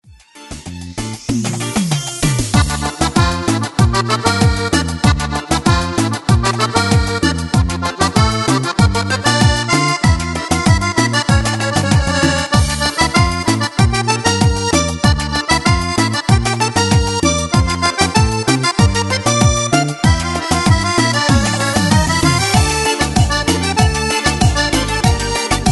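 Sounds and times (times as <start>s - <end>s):
cumbia remix music: 0.0s - 25.6s.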